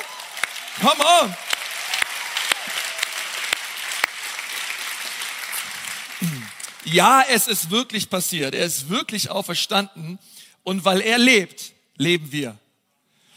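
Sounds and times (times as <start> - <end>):
audience applause: 0.0 - 7.1
speech: 0.8 - 1.5, 6.9 - 12.6.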